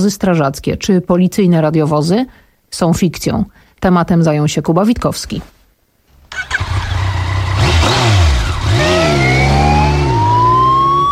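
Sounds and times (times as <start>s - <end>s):
speech: 0.0s - 5.6s
motorcycle ambulance engine revving on Polish roads: 6.3s - 11.1s
motorcycle ambulance siren wailing: 8.8s - 11.1s.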